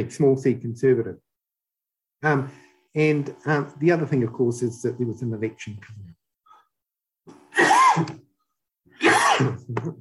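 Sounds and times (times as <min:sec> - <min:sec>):
speech: 0:00.0 - 0:01.2, 0:02.2 - 0:06.1, 0:08.0 - 0:08.2, 0:09.0 - 0:09.9
harsh raspy cough: 0:07.5 - 0:08.3, 0:09.0 - 0:09.7.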